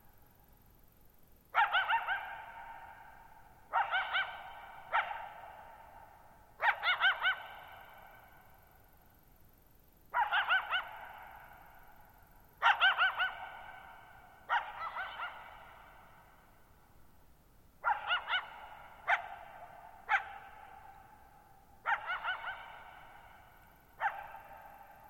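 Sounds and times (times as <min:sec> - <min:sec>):
coyote barking and yipping with echo: 0:01.5 - 0:08.4, 0:10.1 - 0:11.9, 0:12.6 - 0:16.4, 0:17.8 - 0:25.0.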